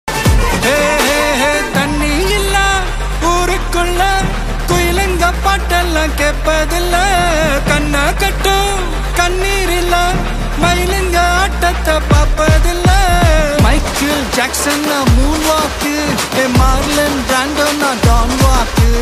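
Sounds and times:
ringtone background music: 0.1s - 19.0s.

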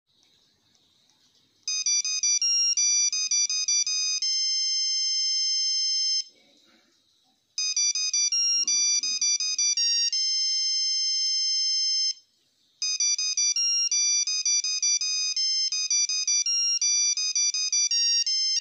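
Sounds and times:
background music playing on Nokia keypad phone: 1.6s - 6.3s, 7.6s - 18.5s.

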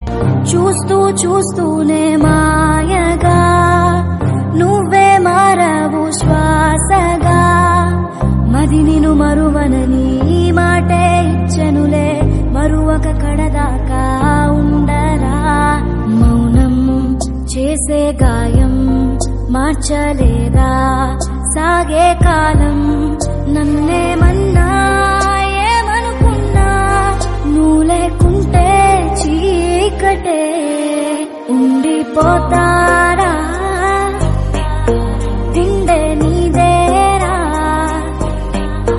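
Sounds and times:
woman singing a Telugu song: 0.1s - 38.9s.

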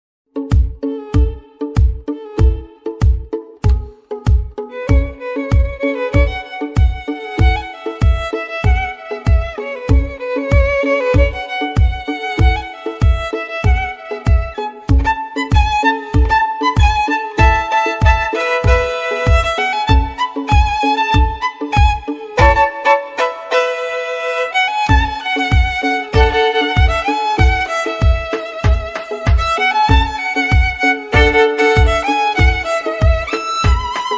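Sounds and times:
instrumental violin background music ringtone: 0.3s - 34.1s.

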